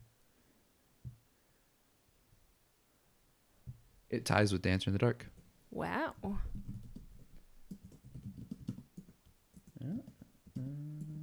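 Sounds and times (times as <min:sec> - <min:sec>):
speech: 0:04.1 - 0:06.3
typing on a computer keyboard: 0:06.6 - 0:11.2.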